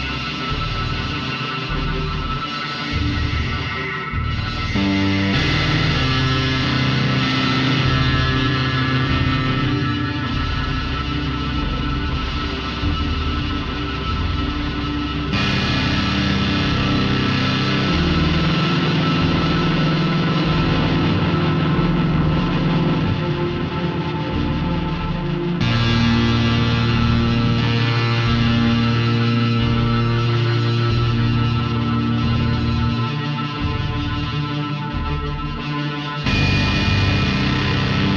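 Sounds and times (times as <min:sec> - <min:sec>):
computer-made music with synthesizers and organ-like tones: 0:00.0 - 0:38.1
pulsing low bass: 0:00.0 - 0:38.1.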